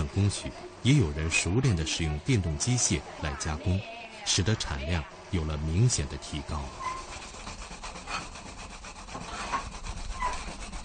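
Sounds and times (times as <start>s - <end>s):
speech: 0.2s - 7.0s
scouring rush rubbing against a fan: 5.9s - 10.8s.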